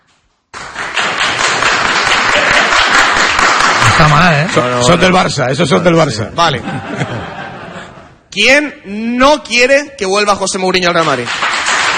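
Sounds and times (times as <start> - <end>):
studio audience applauding: 0.6 - 5.3, 10.9 - 11.9
speech: 4.0 - 7.1, 8.4 - 11.6
laughter: 5.6 - 8.2.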